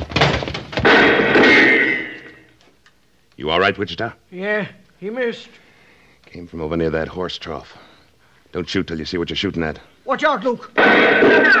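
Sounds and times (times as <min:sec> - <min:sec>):
heavy wooden door being forced open with a crash: 0:00.0 - 0:02.3
speech: 0:03.4 - 0:05.6, 0:06.3 - 0:07.9, 0:08.5 - 0:11.5.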